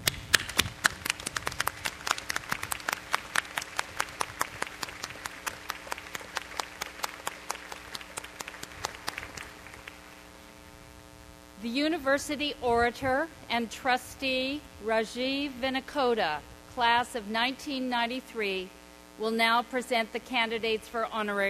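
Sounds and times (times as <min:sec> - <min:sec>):
commencement audience applause: 0:00.0 - 0:10.0
speech: 0:11.8 - 0:21.4.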